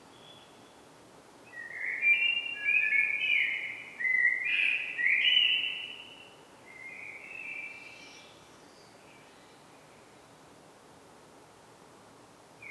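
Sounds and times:
common blackbird Turdus merula song: 1.5s - 9.6s.

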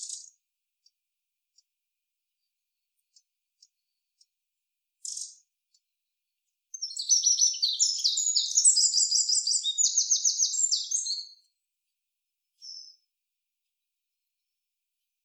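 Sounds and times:
Eurasian wren dry buzzy rattling calls: 6.8s - 11.2s.

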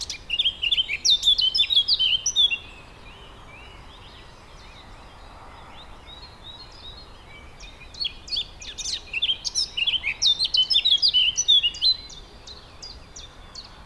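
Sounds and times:
Eurasian blackcap Sylvia atricapilla song: 0.0s - 2.7s, 7.7s - 12.2s.

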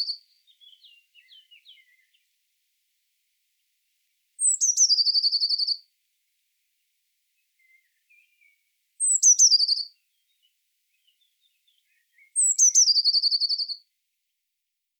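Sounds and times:
Cyanistes caeruleus: 0.0s - 2.2s, 4.4s - 5.8s, 7.6s - 13.8s.

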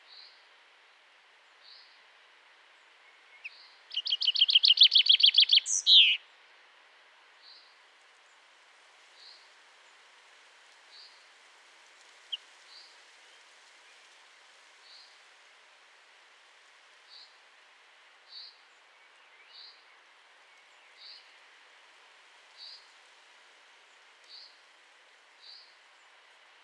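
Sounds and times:
common chaffinch call: 4.1s - 6.2s.

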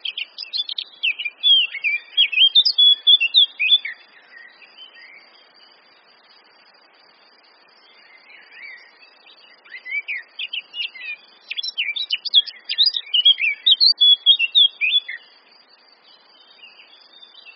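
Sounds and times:
Sylvia atricapilla singing: 0.0s - 5.3s, 8.0s - 15.4s.

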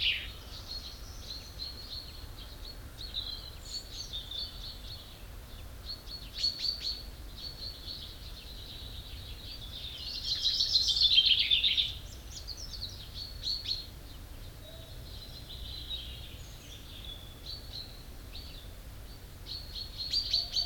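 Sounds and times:
common chaffinch Fringilla coelebs singing: 0.0s - 20.6s.

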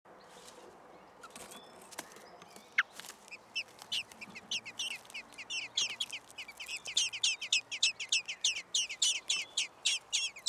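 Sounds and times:
common blackbird Turdus merula chinking calls: 2.4s - 10.4s.

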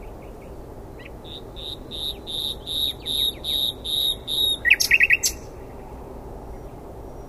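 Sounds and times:
Common nightingale singing: 0.0s - 5.6s.

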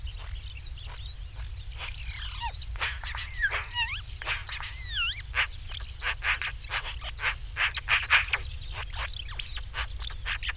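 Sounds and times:
Pica pica Eurasian magpie giving harsh rapid chattering calls: 0.2s - 10.5s.

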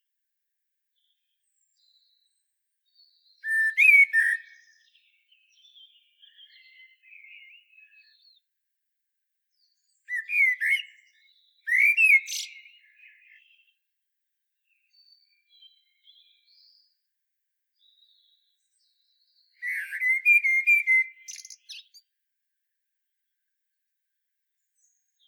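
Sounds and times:
common blackbird singing fluted phrases: 3.4s - 8.3s, 10.0s - 13.7s, 19.3s - 22.0s.

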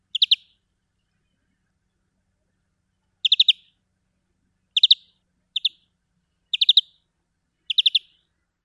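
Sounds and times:
European greenfinch (Chloris chloris) giving chattering calls: 0.1s - 0.5s, 3.2s - 3.7s, 4.8s - 5.8s, 6.5s - 7.0s, 7.7s - 8.2s.

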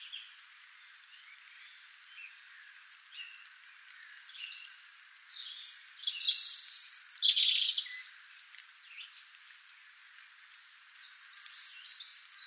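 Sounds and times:
European robin singing: 0.0s - 10.0s, 11.0s - 12.4s.

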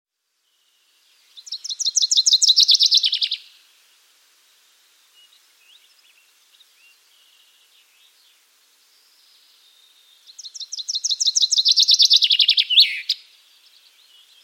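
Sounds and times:
Common chaffinch Fringilla coelebs singing: 0.5s - 3.7s, 5.0s - 14.4s.

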